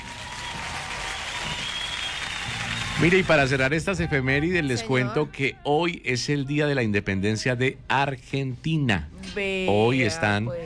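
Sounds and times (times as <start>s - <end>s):
studio audience of a Spanish-language show applauding: 0.0s - 5.1s
speech: 3.0s - 10.6s.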